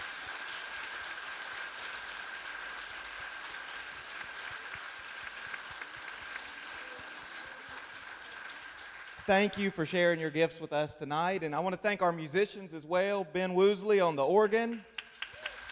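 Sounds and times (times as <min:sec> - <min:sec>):
applause for a choir: 0:00.0 - 0:10.4, 0:14.5 - 0:15.7
speech: 0:09.3 - 0:14.9.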